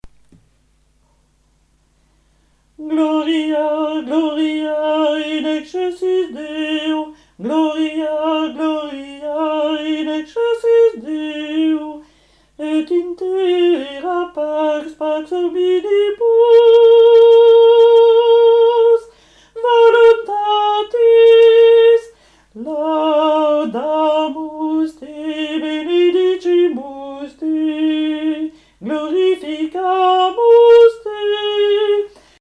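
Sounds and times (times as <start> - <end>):
altos singing medieval gloria first part: 2.8 - 12.0, 12.6 - 32.2.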